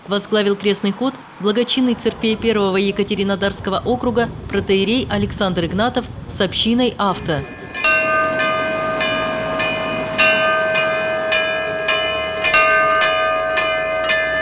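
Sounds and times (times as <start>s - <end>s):
speech: 0.1s - 8.0s
rushing rumbling noise: 1.8s - 14.4s
church bells ringing from mobile belfry: 7.1s - 14.4s.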